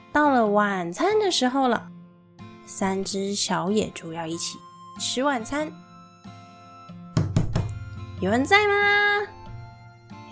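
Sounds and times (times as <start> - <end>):
speech: 0.2 - 2.0, 2.7 - 5.8, 8.2 - 9.3
knocking on a door: 7.2 - 7.8.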